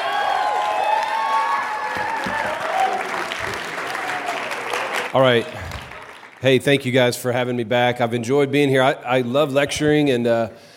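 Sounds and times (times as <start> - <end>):
audience clapping: 0.0 - 7.0
speech: 5.1 - 5.7, 6.4 - 10.7.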